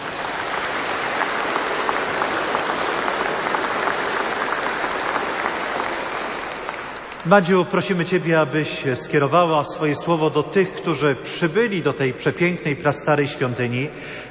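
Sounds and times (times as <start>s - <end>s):
audience applause: 0.0s - 7.5s
speech: 7.3s - 14.2s.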